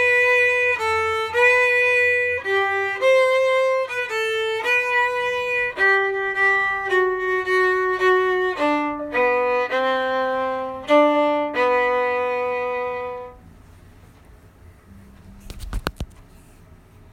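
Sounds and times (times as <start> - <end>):
fiddle: 0.0 - 13.4.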